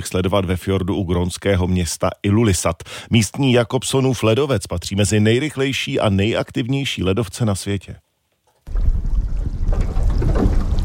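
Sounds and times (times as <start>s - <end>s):
speech: 0.0s - 8.0s
sightseeing boat on a fjord: 8.7s - 10.8s.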